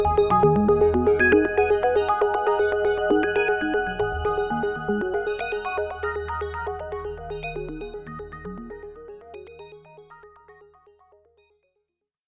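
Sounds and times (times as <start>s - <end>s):
synthesizer music mix: 0.0s - 9.4s.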